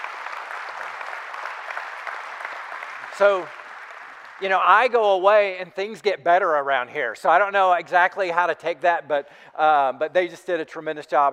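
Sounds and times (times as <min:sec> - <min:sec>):
audience round of applause: 0:00.0 - 0:05.0
speech: 0:03.2 - 0:03.6, 0:04.4 - 0:11.3.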